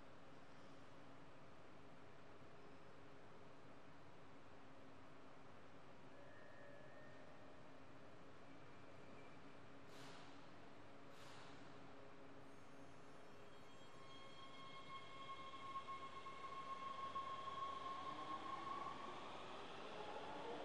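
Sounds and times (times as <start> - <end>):
distant subway train: 6.0 - 20.6.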